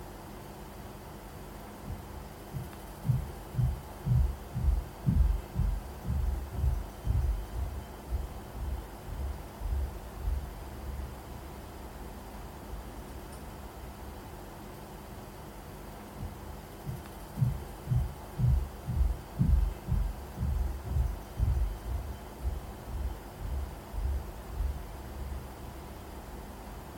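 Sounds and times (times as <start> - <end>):
footsteps in a bedroom with a concrete ceiling: 2.6 - 10.4, 16.2 - 24.8.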